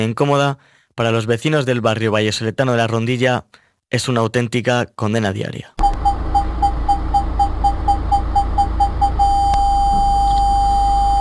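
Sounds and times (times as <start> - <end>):
speech: 0.0 - 5.9
car parking sensor beeping: 5.8 - 11.1
low rumbling hum: 5.8 - 11.1.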